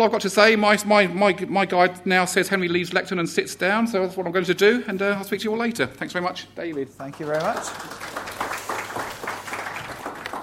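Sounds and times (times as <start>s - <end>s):
speech: 0.0s - 8.1s
conference audience applause: 7.1s - 10.4s.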